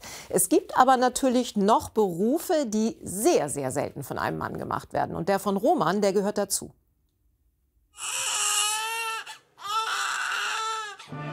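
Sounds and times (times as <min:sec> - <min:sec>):
speech: 0:00.3 - 0:06.8
newborn baby crying: 0:08.0 - 0:11.1.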